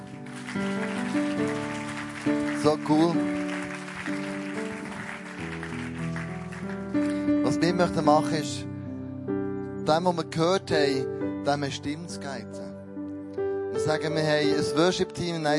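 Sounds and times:
audience applause: 0.0s - 7.3s
speech: 2.6s - 3.4s, 7.6s - 8.7s, 9.9s - 12.6s, 13.9s - 15.5s.

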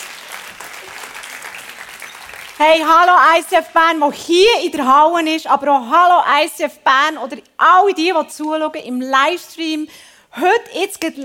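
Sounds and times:
audience applause: 0.0s - 2.6s
speech: 2.6s - 11.2s.

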